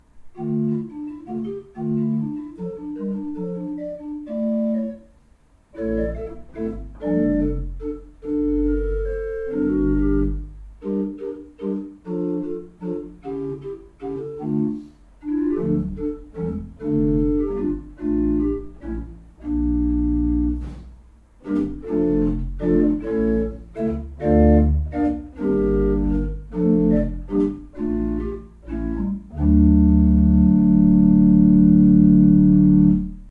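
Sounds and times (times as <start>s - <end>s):
pipe organ: 0.4s - 5.0s, 5.8s - 33.2s.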